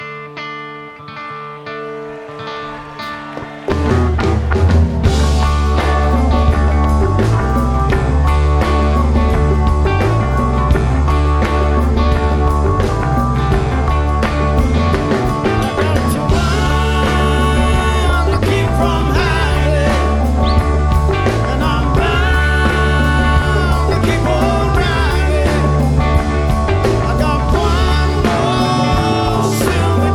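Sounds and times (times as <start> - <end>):
jazz music: 3.5 - 30.1.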